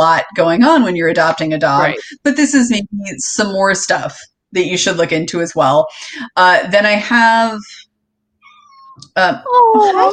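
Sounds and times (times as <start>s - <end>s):
speech: 0.0s - 7.8s, 9.2s - 10.1s
cat squeak: 8.4s - 9.0s.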